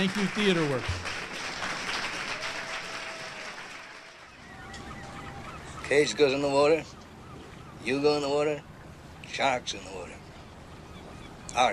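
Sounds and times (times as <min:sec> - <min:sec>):
speech: 0:00.0 - 0:01.2, 0:05.9 - 0:07.0, 0:07.8 - 0:08.7, 0:09.3 - 0:10.2
audience applause: 0:00.0 - 0:04.6.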